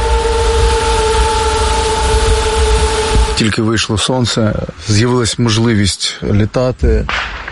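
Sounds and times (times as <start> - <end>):
drone swarm humming overhead: 0.0 - 5.2
speech: 3.4 - 7.4.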